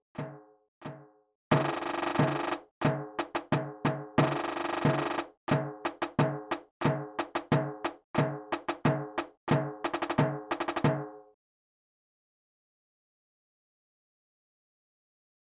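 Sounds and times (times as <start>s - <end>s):
rhythm: 0.2s - 11.3s.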